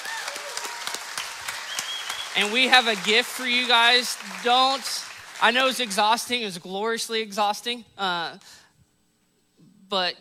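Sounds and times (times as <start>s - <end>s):
audience applause: 0.0s - 6.0s
speech: 2.4s - 8.6s, 9.9s - 10.2s.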